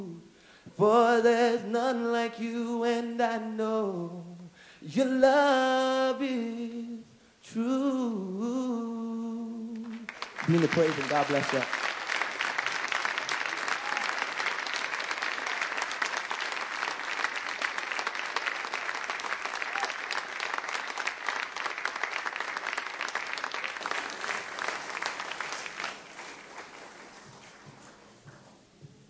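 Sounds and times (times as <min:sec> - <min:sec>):
speech: 0:00.8 - 0:04.3, 0:04.9 - 0:06.9, 0:07.5 - 0:08.9, 0:10.5 - 0:11.8
audience applause after worship song: 0:10.0 - 0:28.0.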